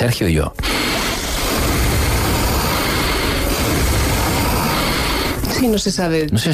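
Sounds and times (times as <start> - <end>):
speech: 0.0 - 0.7, 5.6 - 6.5
three people breathing at once: 0.6 - 5.8.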